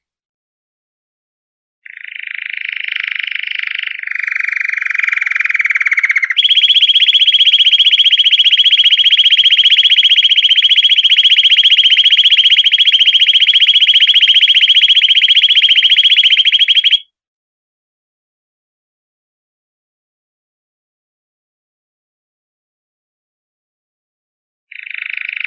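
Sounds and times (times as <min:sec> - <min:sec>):
canary buzzy trill of fast repeated notes: 0:03.8 - 0:17.0.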